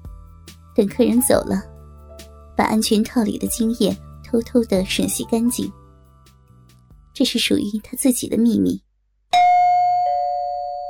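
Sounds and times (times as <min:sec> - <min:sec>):
speech: 0:00.8 - 0:01.7, 0:02.6 - 0:05.8, 0:07.2 - 0:08.8
doorbell ringing: 0:09.3 - 0:10.8.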